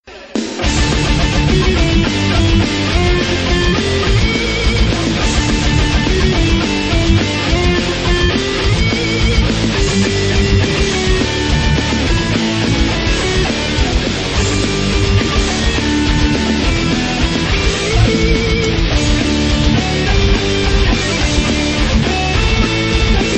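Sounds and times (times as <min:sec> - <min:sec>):
metal music: 0:00.1 - 0:23.3.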